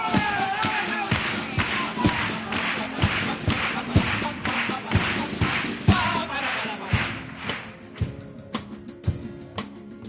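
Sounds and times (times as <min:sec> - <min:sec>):
hands clapping: 0:00.1 - 0:09.7.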